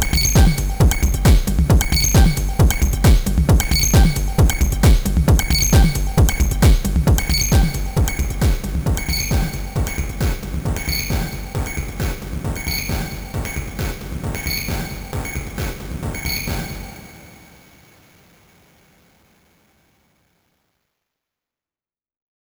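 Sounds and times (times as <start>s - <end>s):
music loop mix: 0.0s - 17.5s.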